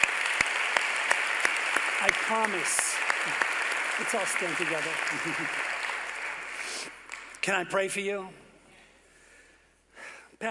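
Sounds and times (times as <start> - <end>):
audience hand clapping: 0.0 - 7.8
speech: 2.0 - 5.8, 6.8 - 8.4.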